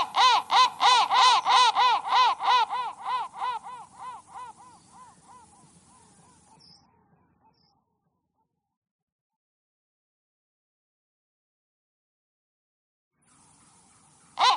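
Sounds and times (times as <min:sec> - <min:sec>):
crow thread noise: 0:00.0 - 0:07.8, 0:13.3 - 0:14.5.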